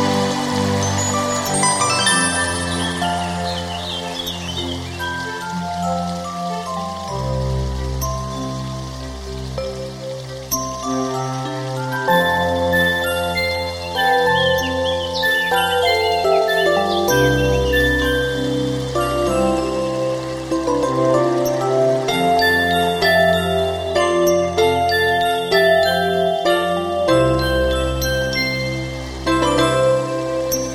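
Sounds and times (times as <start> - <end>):
birds singing in spring: 0.0 - 30.7
spring stream flowing: 0.0 - 30.7.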